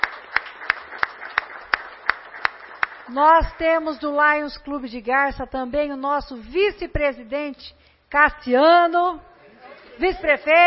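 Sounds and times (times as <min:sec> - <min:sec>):
applause: 0:00.0 - 0:03.6
speech: 0:03.1 - 0:09.3, 0:10.0 - 0:10.6.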